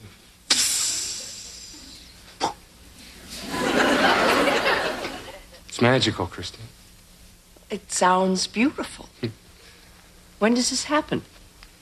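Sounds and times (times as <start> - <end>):
fishing line hissing during a cast: 0.5 - 2.2
laughter: 3.2 - 5.5
speech: 5.8 - 6.8, 7.7 - 9.4, 10.4 - 11.3.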